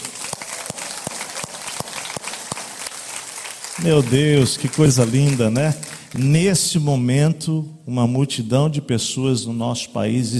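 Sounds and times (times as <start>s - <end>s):
audience applause: 0.0s - 6.4s
speech: 3.8s - 10.3s.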